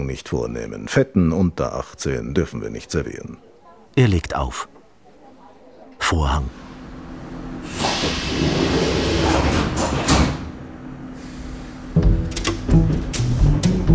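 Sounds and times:
speech: 0:00.0 - 0:04.8, 0:06.1 - 0:06.6
moving subway train heard from inside carriage: 0:06.5 - 0:13.8.

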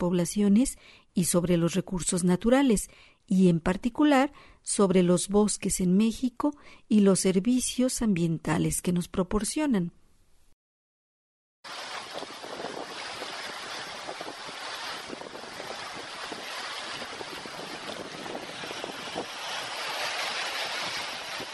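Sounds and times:
speech: 0:00.0 - 0:10.0
Balsas River water rushing in Mexico: 0:11.7 - 0:21.5.

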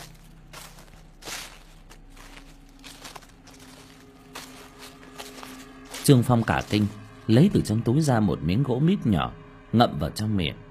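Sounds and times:
rustling footsteps approaching: 0:00.0 - 0:07.4
speech: 0:06.1 - 0:10.7.

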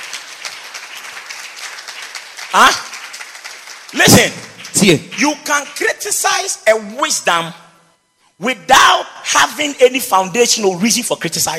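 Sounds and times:
people clapping: 0:00.0 - 0:06.5
speech: 0:02.5 - 0:02.9, 0:03.9 - 0:07.6, 0:08.4 - 0:11.5.

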